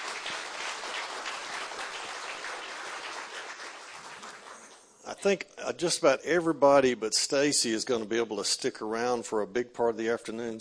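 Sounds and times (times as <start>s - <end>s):
audience applauding: 0.0s - 4.8s
speech: 5.1s - 10.5s.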